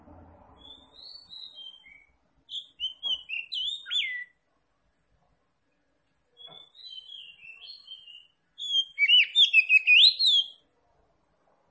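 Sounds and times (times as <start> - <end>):
Oriental magpie-robin singing: 0.6 - 4.4, 6.4 - 10.6.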